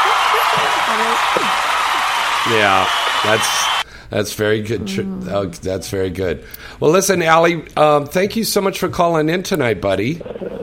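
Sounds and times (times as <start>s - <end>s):
applause: 0.0s - 3.8s
speech: 2.4s - 10.5s.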